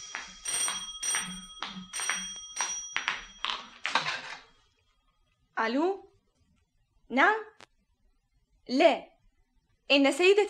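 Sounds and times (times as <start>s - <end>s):
telephone bell ringing: 0.0s - 4.6s
speech: 5.6s - 6.1s, 7.1s - 7.5s, 8.7s - 9.1s, 9.9s - 10.4s.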